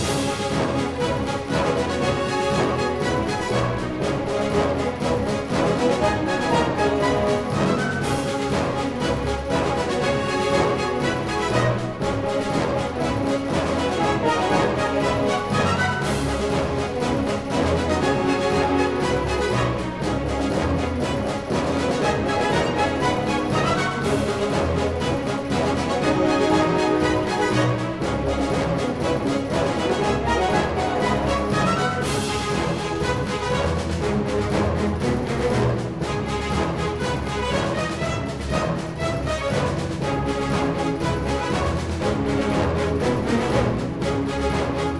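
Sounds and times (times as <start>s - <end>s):
hard fight music loop: 0.0s - 44.9s.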